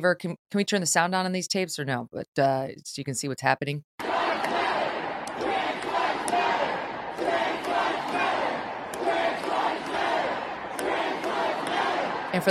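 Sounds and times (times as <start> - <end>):
speech: 0.0 - 4.0
protest crowd chanting inside capitol building: 4.0 - 12.4
sharp claps or bangs: 4.0 - 12.4.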